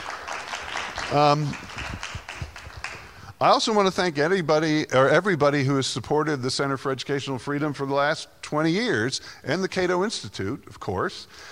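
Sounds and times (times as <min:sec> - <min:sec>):
audience applause: 0:00.0 - 0:03.2
speech: 0:01.1 - 0:01.7, 0:03.4 - 0:11.5.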